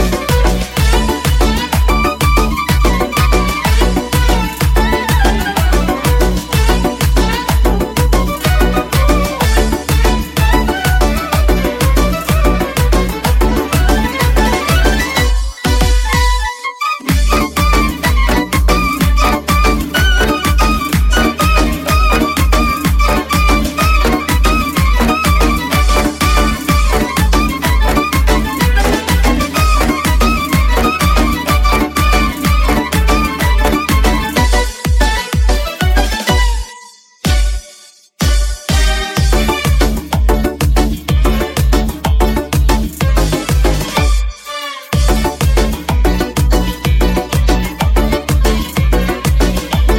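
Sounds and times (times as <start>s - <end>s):
remix music: 0.0s - 49.9s.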